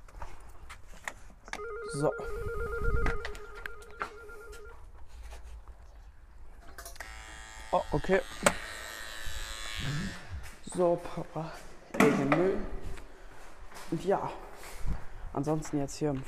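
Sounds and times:
doorbell ringing: 1.6 - 4.8
speech: 1.9 - 2.9, 7.9 - 8.6, 10.7 - 12.8, 13.9 - 14.4, 15.4 - 16.2.

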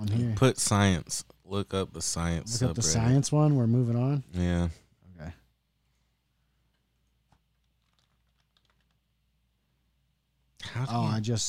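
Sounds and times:
speech: 0.0 - 5.4, 10.6 - 11.4
fast typing on a computer keyboard: 7.5 - 9.0.

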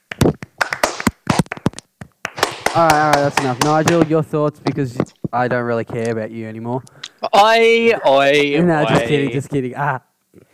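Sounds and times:
clapping: 0.0 - 4.1
speech: 2.8 - 10.1.

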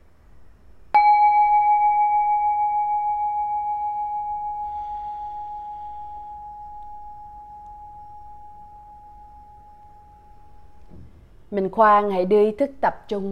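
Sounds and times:
meditation bell ringing: 1.0 - 10.9
speech: 11.5 - 13.2.

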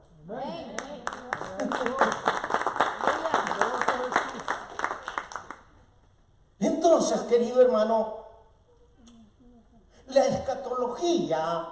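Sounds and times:
audience clapping hands: 0.7 - 5.8
speech: 7.0 - 8.2, 10.8 - 11.6.

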